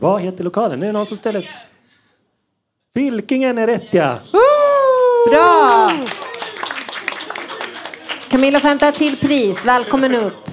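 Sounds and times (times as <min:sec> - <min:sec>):
speech: 0:00.0 - 0:01.7, 0:02.9 - 0:04.6, 0:05.2 - 0:06.2, 0:08.3 - 0:10.5
audience applause: 0:05.2 - 0:10.5.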